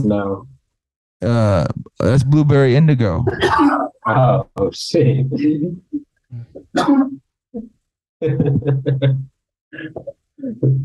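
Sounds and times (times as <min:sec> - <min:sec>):
speech: 0:00.0 - 0:00.5, 0:01.2 - 0:10.8
laughter: 0:03.0 - 0:04.4, 0:08.2 - 0:09.2
person coughing: 0:03.3 - 0:03.9, 0:06.8 - 0:07.2, 0:08.2 - 0:09.2.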